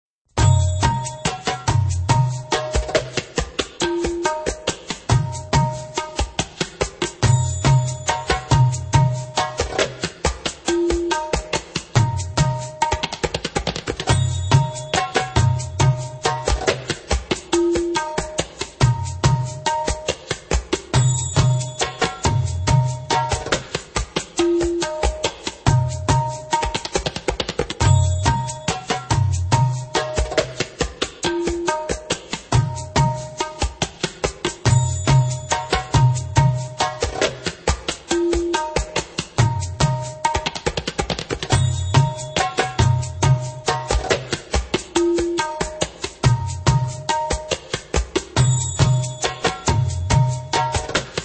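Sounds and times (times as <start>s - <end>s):
slow Indian saidi music: 0.3s - 51.2s.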